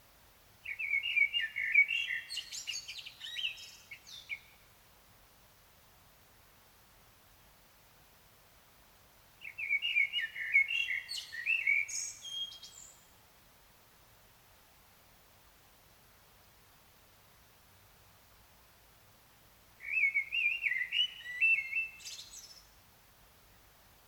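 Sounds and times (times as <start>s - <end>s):
common blackbird singing: 0.7s - 4.5s, 9.4s - 13.1s, 19.8s - 22.7s.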